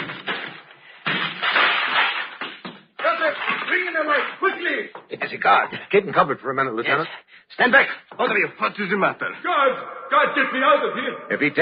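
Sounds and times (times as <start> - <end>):
door being broken down: 0.0 - 4.4
speech: 5.1 - 11.6.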